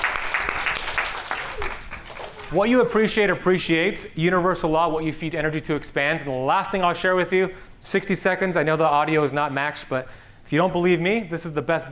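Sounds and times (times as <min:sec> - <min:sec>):
audience applause: 0:00.0 - 0:02.9
speech: 0:02.5 - 0:11.9.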